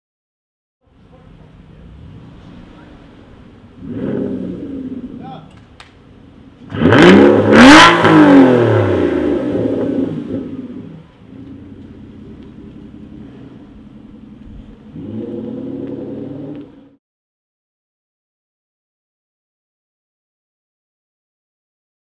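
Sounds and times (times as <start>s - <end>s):
Aston Martin Rapide: 0.8s - 17.0s.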